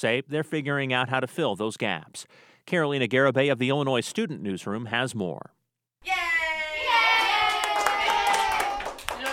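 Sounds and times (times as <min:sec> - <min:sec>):
speech: 0:00.0 - 0:06.2
fifth grade schoolchildren cheering each other on: 0:06.0 - 0:09.2.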